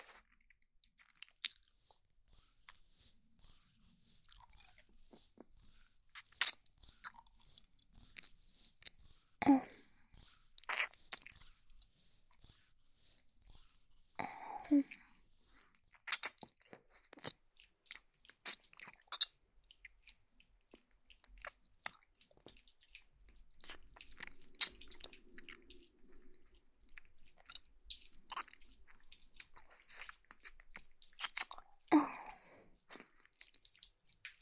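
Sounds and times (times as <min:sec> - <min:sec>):
ear-licking ASMR wet licking and mouth sounds: 0:00.9 - 0:31.9, 0:32.7 - 0:34.4
breathy sigh-like voicings: 0:14.2 - 0:15.1.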